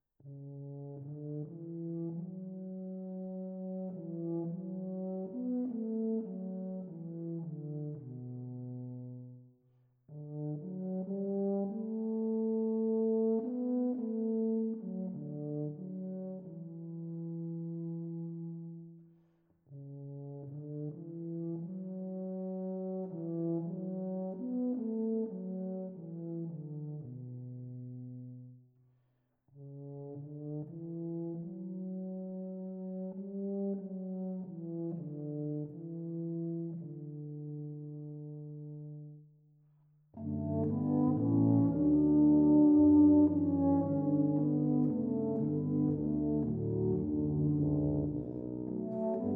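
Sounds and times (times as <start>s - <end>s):
tuba trio: 0.2s - 9.4s, 10.1s - 19.0s, 19.7s - 28.5s, 29.6s - 39.2s, 40.2s - 49.3s.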